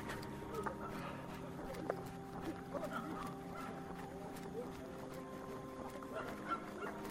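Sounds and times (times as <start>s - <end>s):
faint outdoor noise: 0.0s - 7.1s
cicadas droning: 0.4s - 7.1s
dog barking: 2.8s - 3.8s, 6.0s - 7.1s.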